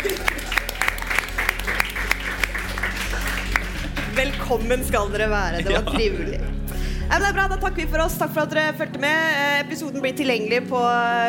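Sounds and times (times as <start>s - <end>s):
laughter: 0.0s - 4.4s, 5.2s - 6.9s
audience applause: 0.0s - 4.8s
speech: 4.2s - 6.5s, 7.1s - 11.2s.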